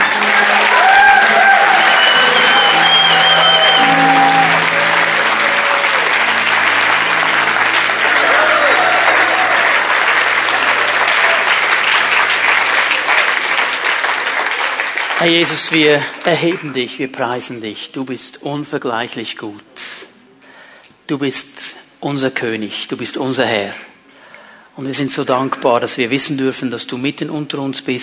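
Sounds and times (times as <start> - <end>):
audience giving hearty applause: 0.0 - 16.8
speech: 15.3 - 20.0, 21.1 - 23.9, 24.8 - 28.0.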